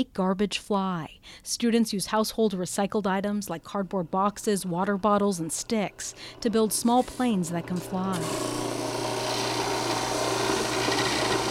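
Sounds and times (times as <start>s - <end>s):
speech: 0.0s - 8.6s
electric sander sanding down foam: 6.6s - 11.4s.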